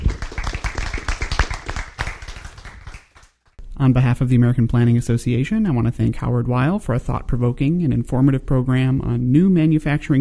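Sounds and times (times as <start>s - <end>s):
audience applause: 0.0s - 3.4s
speech: 3.8s - 10.1s.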